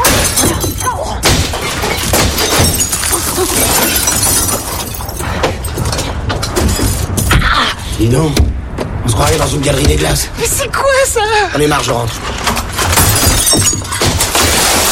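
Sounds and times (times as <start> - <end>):
large glass window shattering: 0.0 - 7.4, 12.4 - 14.9
speech: 8.0 - 8.5, 9.2 - 12.5.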